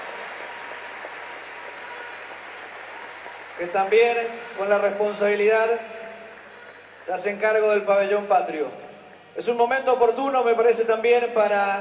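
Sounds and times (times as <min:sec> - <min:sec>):
applause for the flag bearers: 0:00.0 - 0:08.7
speech: 0:03.6 - 0:06.0, 0:07.1 - 0:08.8, 0:09.4 - 0:11.7.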